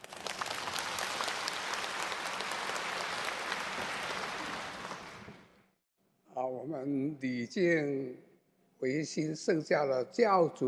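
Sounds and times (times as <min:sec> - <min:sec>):
audience applause: 0:00.0 - 0:05.7
speech: 0:06.6 - 0:10.6.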